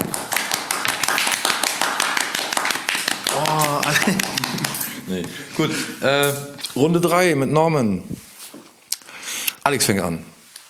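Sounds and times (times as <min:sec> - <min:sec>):
audience applause: 0:00.0 - 0:05.8
laughter: 0:03.2 - 0:06.6
speech: 0:05.1 - 0:08.2, 0:09.6 - 0:10.3.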